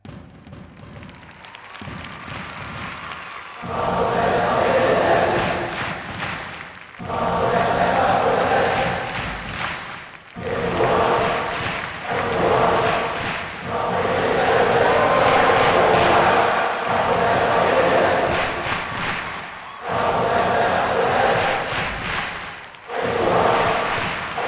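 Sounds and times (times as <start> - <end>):
European chants: 1.5 - 24.4.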